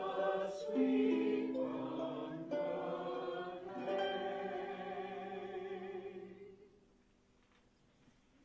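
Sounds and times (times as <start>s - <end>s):
harp: 0.0s - 6.6s.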